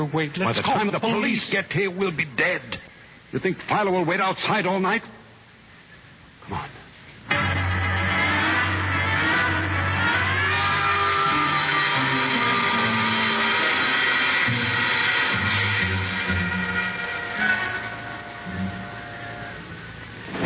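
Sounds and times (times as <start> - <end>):
speech: 0.0 - 5.2, 6.5 - 6.8
service elevator motor humming and whining while descending: 7.3 - 20.3.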